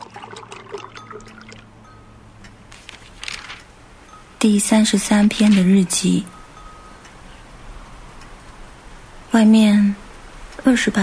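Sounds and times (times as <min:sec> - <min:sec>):
just-boiled water poured over 22 g of ground coffee: 0:00.0 - 0:01.6
speech: 0:04.4 - 0:06.4, 0:09.4 - 0:10.0, 0:10.6 - 0:11.0.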